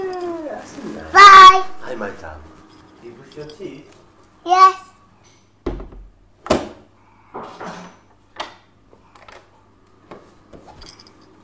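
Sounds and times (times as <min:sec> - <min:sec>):
speech: 0:01.9 - 0:04.8
knocking on a door: 0:05.6 - 0:06.8.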